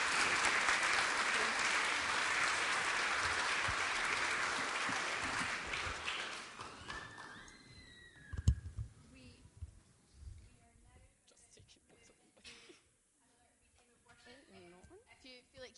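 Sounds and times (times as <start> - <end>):
audience applause: 0.0 - 8.2.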